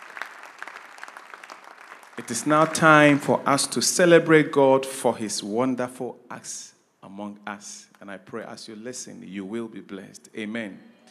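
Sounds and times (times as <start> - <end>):
crowd applause: 0.0 - 3.4
speech: 2.2 - 10.9.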